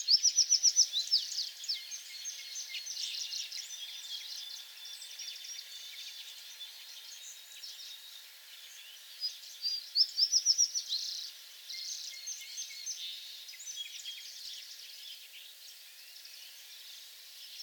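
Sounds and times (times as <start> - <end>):
American tree sparrow singing: 0.0 - 17.6.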